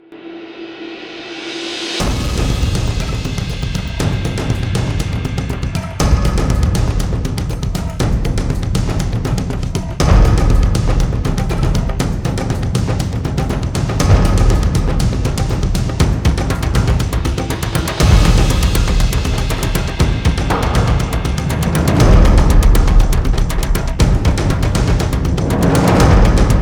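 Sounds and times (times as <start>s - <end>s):
fevered hard hitting heartbeat: 2.0s - 26.6s.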